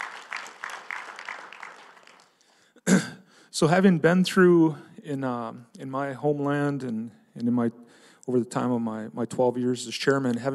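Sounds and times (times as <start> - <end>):
audience applause: 0.0 - 2.6
speech: 3.6 - 10.5.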